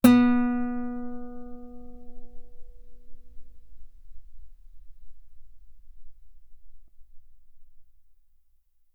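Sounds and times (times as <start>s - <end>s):
guitar B3 note on B string played fortissimo: 0.0s - 4.6s.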